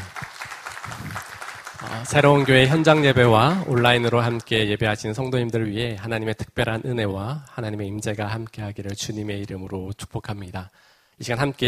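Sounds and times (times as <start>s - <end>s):
audience applauding: 0.0s - 4.6s
speech: 1.9s - 11.6s.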